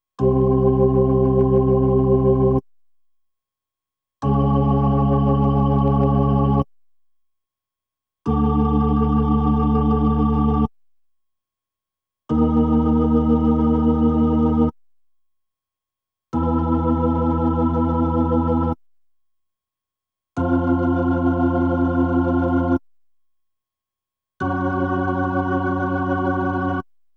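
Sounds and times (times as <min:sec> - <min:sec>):
Hammond B3 organ: 0:00.2 - 0:02.6, 0:04.2 - 0:06.6, 0:08.3 - 0:10.7, 0:12.3 - 0:14.7, 0:16.4 - 0:18.8, 0:20.4 - 0:22.8, 0:24.4 - 0:26.8.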